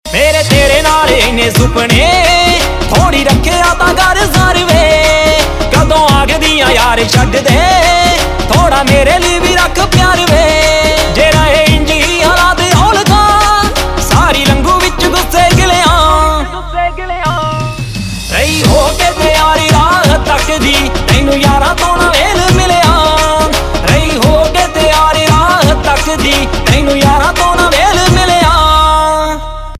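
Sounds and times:
Punjabi pop ringtone: 0.1s - 29.2s.

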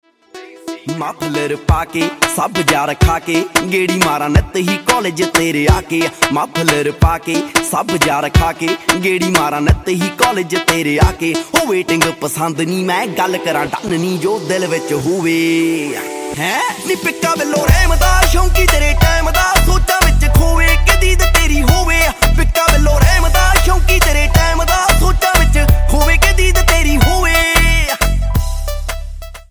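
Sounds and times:
ringtone: 0.1s - 13.8s, 14.5s - 29.4s.

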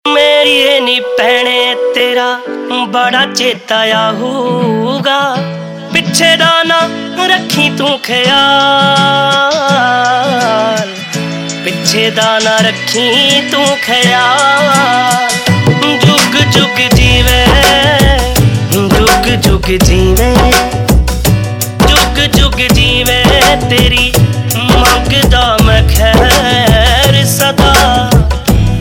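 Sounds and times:
Punjabi pop ringtone: 0.1s - 28.7s.

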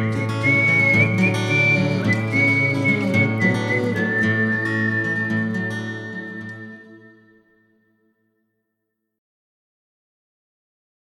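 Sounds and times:
instrumental music: 0.0s - 8.6s.

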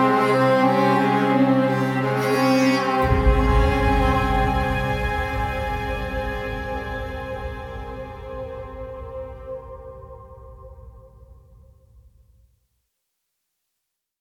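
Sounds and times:
instrumental music: 0.0s - 10.7s.

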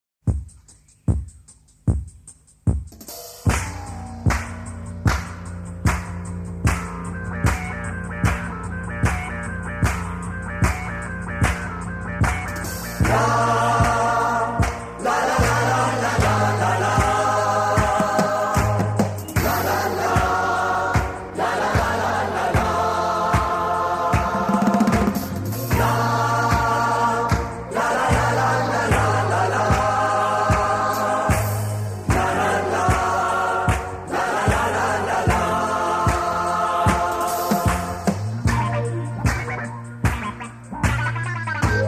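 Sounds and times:
instrumental disco music: 0.2s - 41.8s.

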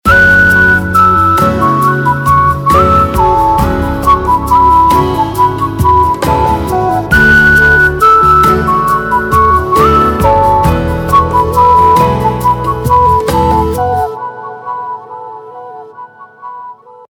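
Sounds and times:
unplugged whistle, Bollywood style: 0.1s - 17.0s.

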